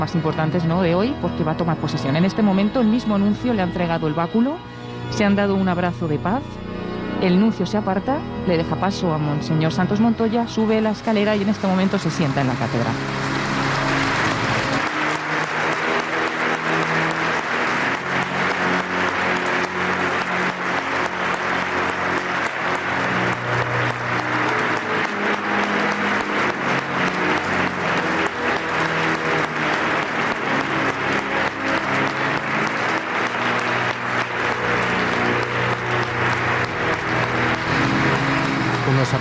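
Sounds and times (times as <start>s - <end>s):
speech: 0.0s - 13.3s
long crowd applause in a cathedral: 9.9s - 39.1s.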